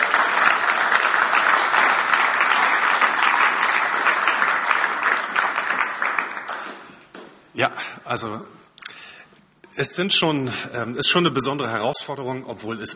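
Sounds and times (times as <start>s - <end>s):
audience applause: 0.0s - 7.2s
speech: 8.1s - 8.6s, 9.8s - 12.9s.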